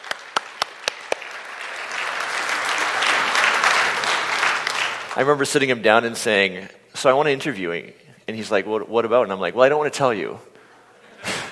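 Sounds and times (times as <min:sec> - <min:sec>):
audience applause: 0:00.0 - 0:05.2
speech: 0:05.2 - 0:10.5.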